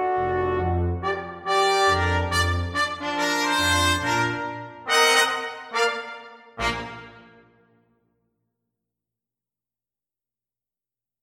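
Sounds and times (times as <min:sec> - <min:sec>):
brass quintet playing jump blues Christmas carol: 0:00.0 - 0:07.4.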